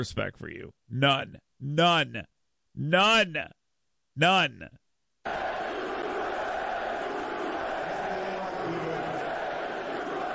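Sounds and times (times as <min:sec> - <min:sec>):
speech: 0:00.0 - 0:03.6, 0:04.2 - 0:05.8
large crowd booing: 0:05.3 - 0:10.3.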